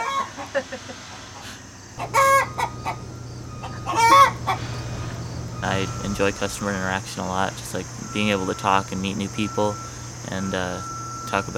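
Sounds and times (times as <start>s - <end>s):
hen clucking and cackling after laying an egg: 0.0s - 5.6s
steady low hum: 2.0s - 11.5s
speech: 5.8s - 11.5s.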